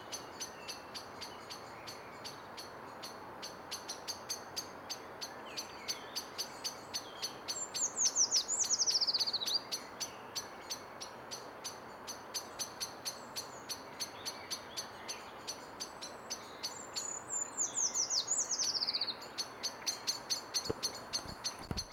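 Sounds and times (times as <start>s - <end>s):
Eurasian treecreeper Certhia familiaris calling: 0.0s - 21.9s.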